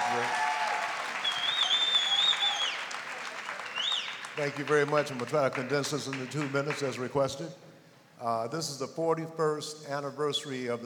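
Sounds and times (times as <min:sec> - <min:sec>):
audience applause: 0:00.0 - 0:06.8
speech: 0:04.4 - 0:07.6, 0:08.2 - 0:10.8.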